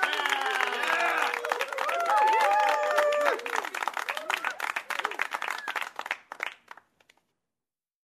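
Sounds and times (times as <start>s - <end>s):
fans cheering: 0.0s - 5.9s.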